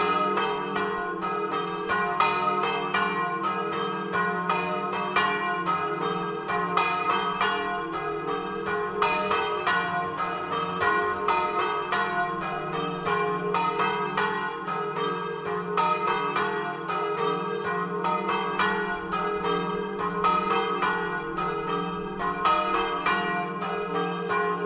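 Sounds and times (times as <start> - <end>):
bells: 0.0 - 24.6.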